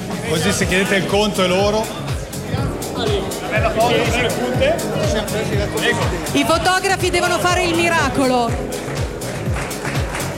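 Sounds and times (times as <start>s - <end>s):
speech: 0.3s - 8.8s
audience applause: 8.5s - 10.3s.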